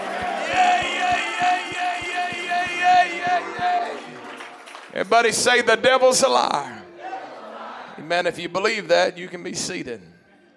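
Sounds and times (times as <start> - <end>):
audience shouting: 0.0 - 4.5
audience clapping: 0.0 - 5.6
speech: 5.0 - 6.8, 8.0 - 10.1.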